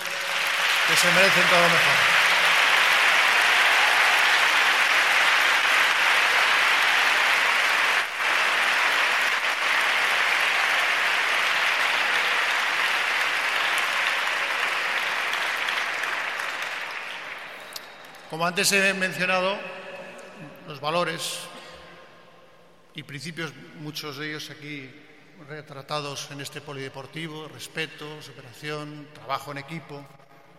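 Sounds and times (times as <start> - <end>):
audience applause: 0.0 - 18.4
speech: 0.9 - 2.1, 18.3 - 19.8, 20.7 - 21.5, 23.0 - 30.2.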